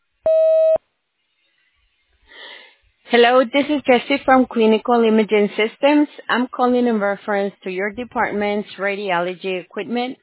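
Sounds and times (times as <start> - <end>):
voicemail electronic beep before a message is recorded: 0.3 - 0.8
speech: 3.1 - 10.2.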